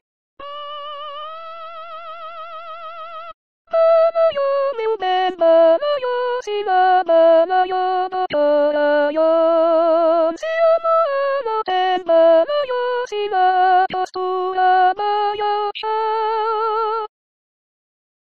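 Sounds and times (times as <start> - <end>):
soprano singing Brazilian folk song: 3.7 - 17.1.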